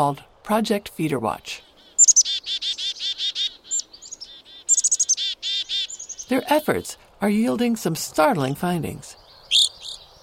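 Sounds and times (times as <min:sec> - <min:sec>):
speech: 0:00.0 - 0:01.7, 0:06.3 - 0:09.2
evening grosbeak calls: 0:01.6 - 0:06.8, 0:09.2 - 0:10.2.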